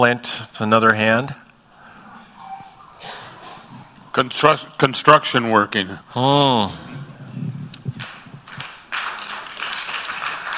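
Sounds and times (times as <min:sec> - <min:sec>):
speech: 0:00.0 - 0:01.4, 0:04.2 - 0:07.0
audience applauding: 0:07.9 - 0:10.5.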